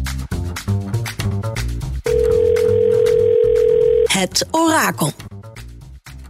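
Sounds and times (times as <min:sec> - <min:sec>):
music: 0:00.0 - 0:06.2
telephone ringing tone while placing a call: 0:02.1 - 0:04.1
speech: 0:04.2 - 0:05.3.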